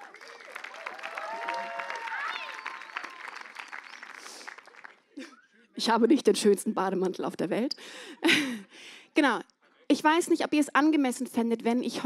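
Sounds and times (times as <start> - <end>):
audience applause: 0.0 - 5.2
laughter: 5.1 - 5.8, 8.1 - 8.7
speech: 5.8 - 12.0.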